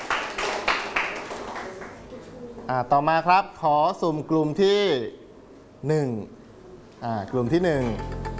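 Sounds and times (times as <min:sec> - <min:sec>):
classmates clapping for a student group in a classroom: 0:00.0 - 0:02.1
speech: 0:02.7 - 0:05.2, 0:05.8 - 0:06.4, 0:07.0 - 0:08.2.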